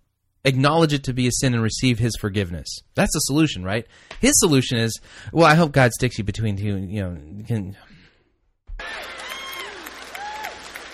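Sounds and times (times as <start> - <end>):
speech: 0.4 - 7.9
audience applause: 8.8 - 10.9.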